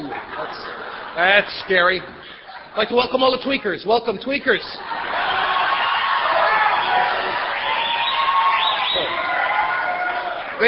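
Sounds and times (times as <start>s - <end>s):
audience clapping: 0.0s - 2.1s, 5.1s - 10.6s
laughter: 0.0s - 3.1s, 4.6s - 7.8s
speech: 0.2s - 5.2s
audience whooping: 4.9s - 10.6s.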